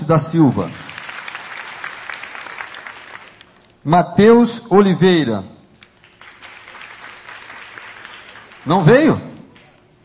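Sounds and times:
audience clapping: 0.0 - 3.7, 5.8 - 10.0
speech: 0.1 - 0.9, 3.8 - 5.5, 8.7 - 9.3.

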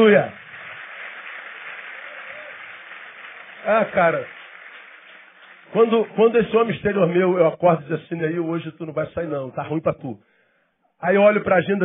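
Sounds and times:
speech: 0.0 - 0.4, 3.6 - 4.4, 5.7 - 10.3, 11.0 - 11.8
crowd applause: 0.0 - 6.7.

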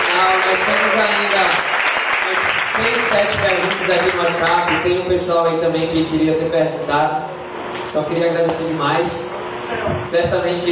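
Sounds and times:
crowd applause: 0.0 - 4.9
speech: 2.8 - 10.6.

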